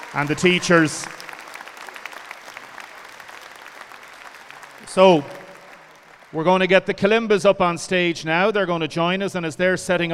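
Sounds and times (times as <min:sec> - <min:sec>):
audience applause: 0:00.0 - 0:06.9
speech: 0:00.1 - 0:01.2, 0:05.0 - 0:05.4, 0:06.3 - 0:10.1.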